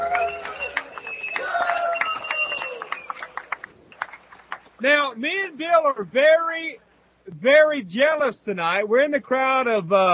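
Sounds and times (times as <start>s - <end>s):
loud whoops and shouts: 0.0s - 3.1s
live audience clapping: 0.0s - 5.2s
speech: 4.8s - 10.1s.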